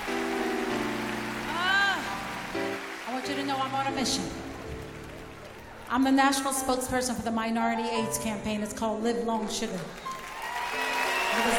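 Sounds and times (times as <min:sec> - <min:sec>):
audience clapping: 0:00.0 - 0:06.7, 0:09.7 - 0:11.5
speech: 0:03.7 - 0:04.4, 0:05.9 - 0:10.1, 0:11.4 - 0:11.5.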